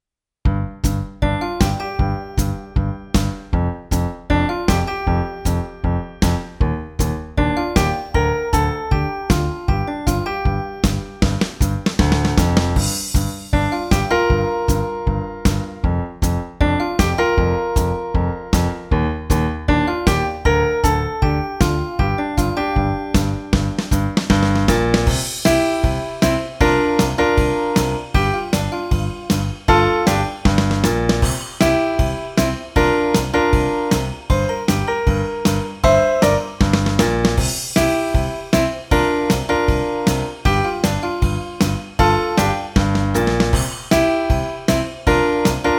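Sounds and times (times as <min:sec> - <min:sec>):
keyboard music: 0:00.5 - 0:45.7.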